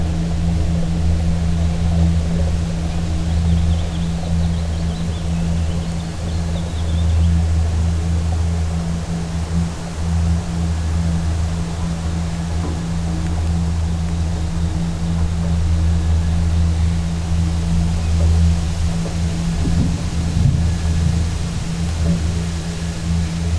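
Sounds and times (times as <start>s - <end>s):
deep drone of structure resonances and ground sounds: 0.0s - 23.5s.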